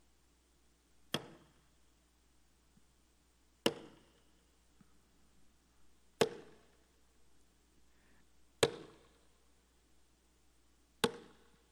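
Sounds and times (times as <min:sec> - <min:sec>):
hammer striking a nail: 0:03.6 - 0:04.0, 0:08.6 - 0:09.0, 0:11.0 - 0:11.4.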